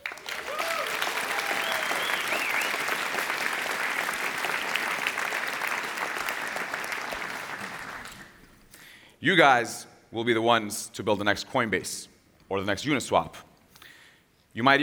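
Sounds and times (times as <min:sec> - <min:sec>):
audience round of applause: 0:00.0 - 0:08.7
speech: 0:09.2 - 0:13.5, 0:14.6 - 0:14.8.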